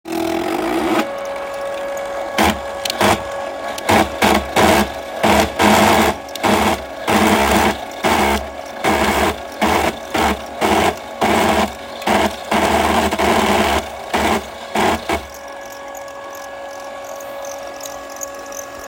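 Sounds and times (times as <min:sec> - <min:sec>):
intermittent skipping: 0:00.9 - 0:18.8.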